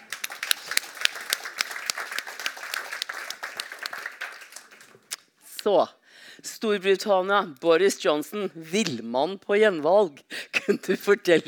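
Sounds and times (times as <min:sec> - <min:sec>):
audience applause: 0:00.0 - 0:05.0
speech: 0:05.6 - 0:11.4.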